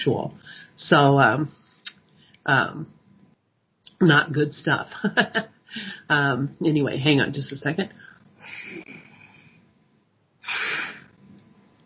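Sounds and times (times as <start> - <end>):
speech: 0.0 - 1.6, 2.4 - 3.0, 4.0 - 8.8
hiss-like puff of an inhaler: 10.4 - 11.1
sharp strong inhalation through an inhaler: 10.4 - 11.1.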